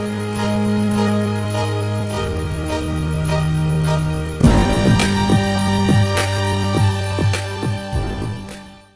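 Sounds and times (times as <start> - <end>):
instrumental music in G minor: 0.0 - 8.9.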